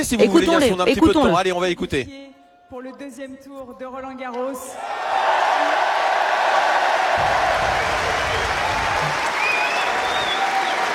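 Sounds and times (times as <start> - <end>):
speech: 0.0 - 6.0
tennis crowd applauding: 4.8 - 10.9.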